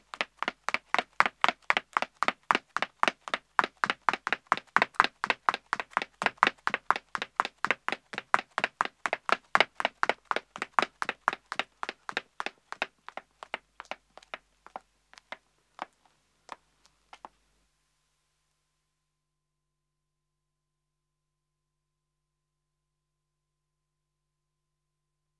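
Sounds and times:
woman running footsteps on pavement: 0.0 - 17.3.

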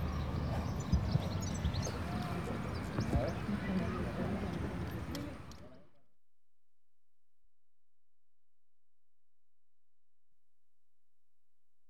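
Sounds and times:
horse hooves clopping while being exercised outdoors in Spain: 0.0 - 5.3.

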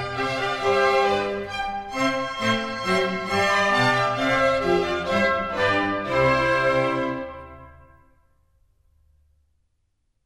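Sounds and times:
minuet in C major: 0.0 - 8.2.

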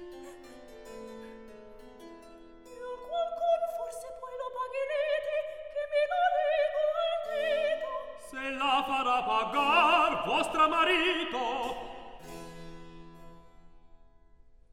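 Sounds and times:
recitative singing: 3.0 - 12.2.

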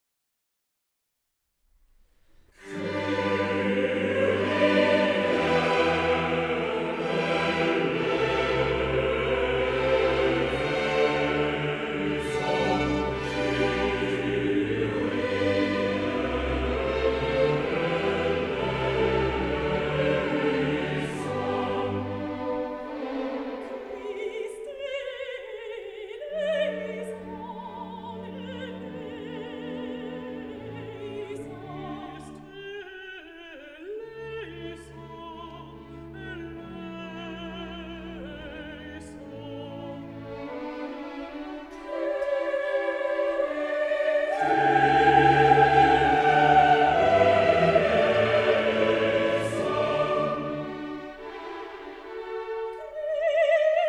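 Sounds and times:
choral mass movement in G: 2.6 - 24.7, 40.2 - 53.8.

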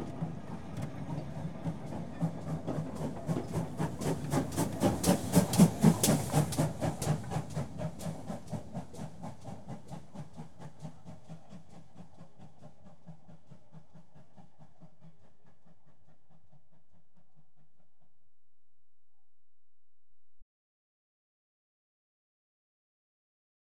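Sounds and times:
train departing: 0.0 - 9.2.

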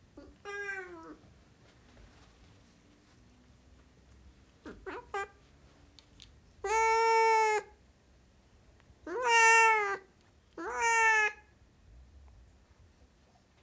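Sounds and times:
Siamese cat meowing: 0.2 - 1.2, 4.7 - 5.4, 6.6 - 7.7, 9.1 - 11.5.

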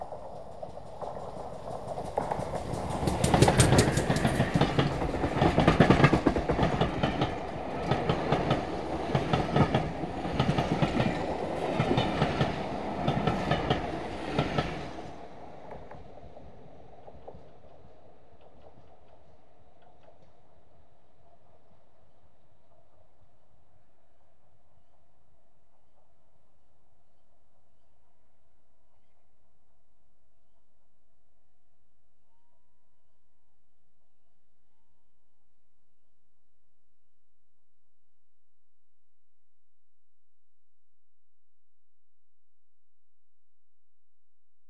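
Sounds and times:
train passing at high speed: 0.0 - 20.3.

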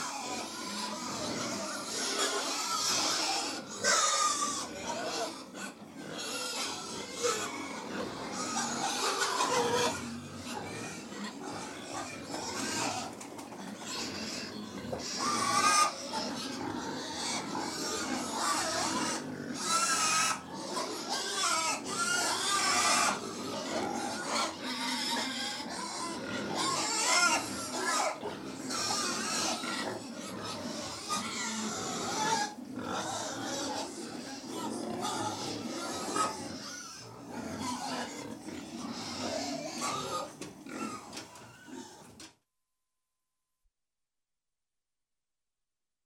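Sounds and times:
feeding pigs grunting and squealing: 0.0 - 42.3.

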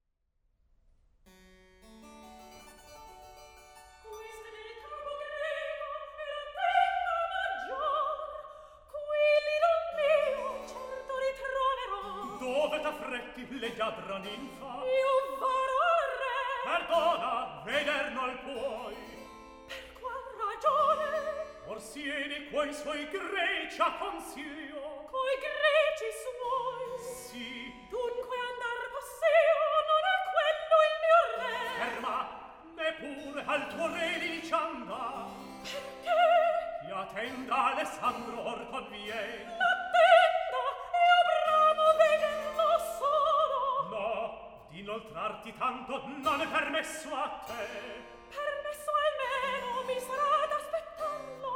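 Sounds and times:
recitative singing: 4.0 - 51.5.

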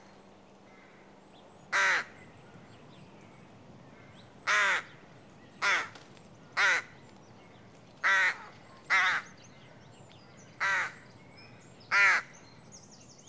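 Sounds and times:
rook caw: 0.7 - 1.1, 1.7 - 2.2, 3.9 - 7.0, 8.0 - 9.4, 10.6 - 11.1, 11.9 - 12.4.

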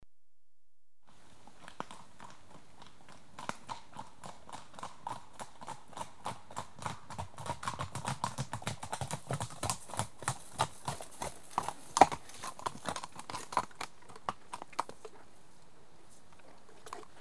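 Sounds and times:
horse hoofbeats: 1.4 - 15.2.

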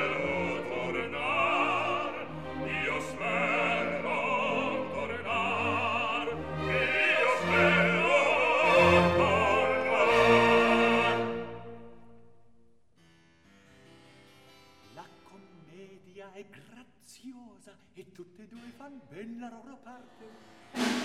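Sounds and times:
short duet: 0.0 - 12.4.

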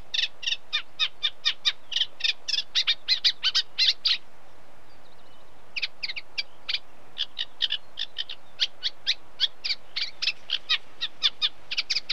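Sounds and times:
unmated male Eurasian reed warbler singing: 0.0 - 12.1.

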